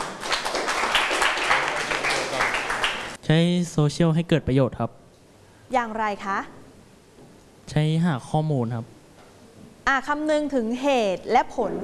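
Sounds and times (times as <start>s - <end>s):
group of students clapping for a student: 0.0s - 3.2s
speech: 3.3s - 5.0s, 5.7s - 6.6s, 7.7s - 9.0s, 9.9s - 11.8s.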